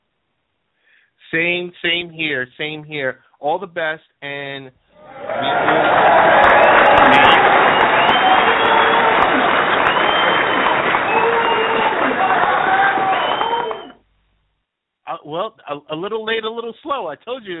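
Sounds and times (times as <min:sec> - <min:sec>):
speech: 0:01.3 - 0:07.3, 0:15.2 - 0:17.5
audience applause sound effect: 0:05.0 - 0:14.0
audience cheers and whistles: 0:05.0 - 0:14.0.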